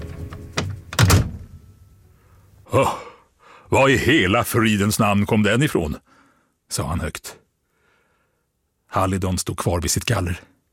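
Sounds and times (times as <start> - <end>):
door slammed shut: 0.0 - 1.7
speech: 2.7 - 3.1, 3.7 - 7.4, 8.9 - 10.5.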